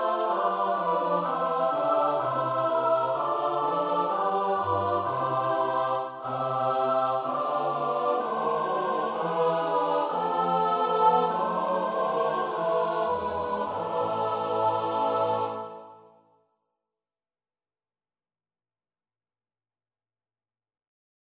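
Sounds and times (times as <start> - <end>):
soprano alto tenor bass voices: 0.0 - 16.0.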